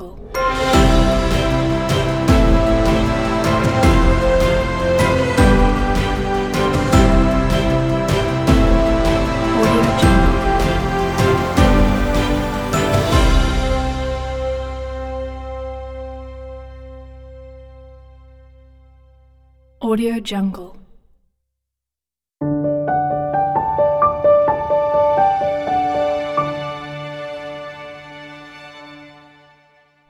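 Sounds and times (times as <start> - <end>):
inspiring logo music: 0.3 - 19.0, 22.9 - 29.8.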